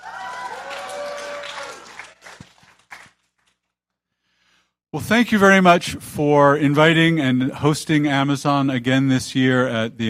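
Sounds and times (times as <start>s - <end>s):
round of applause: 0.0s - 3.6s
speech: 4.9s - 10.0s.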